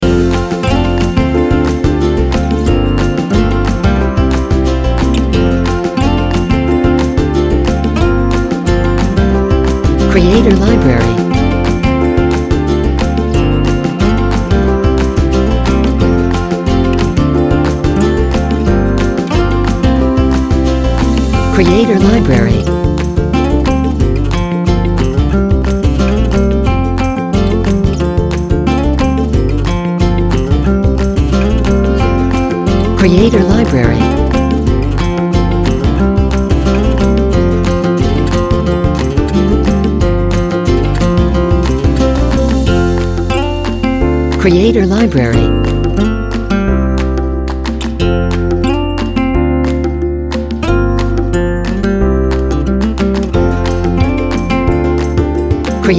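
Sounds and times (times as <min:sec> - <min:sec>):
happy acoustic folk music: 0:00.0 - 0:55.9.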